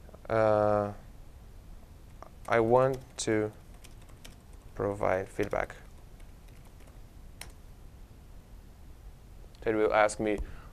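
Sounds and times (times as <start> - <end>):
low hiss: 0.0 - 10.7
speech: 0.3 - 1.0, 2.5 - 3.6, 4.8 - 5.8, 9.6 - 10.6
typing on a computer keyboard: 2.2 - 7.6.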